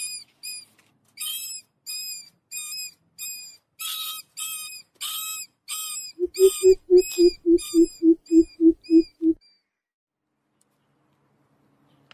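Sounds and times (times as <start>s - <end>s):
greater coucal high squealing harmonic notes: 6.2s - 9.4s.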